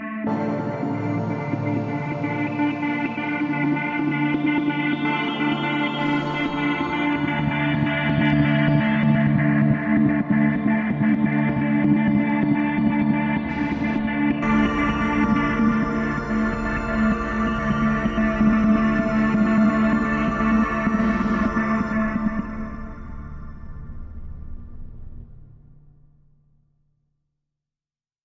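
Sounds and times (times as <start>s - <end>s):
dynamic synth drone: 0.3s - 26.0s.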